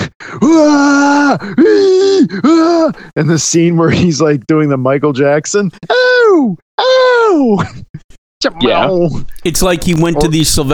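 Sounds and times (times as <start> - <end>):
man screaming in a film clip: 0.4 - 3.0, 5.8 - 7.6
speech: 0.4 - 10.7.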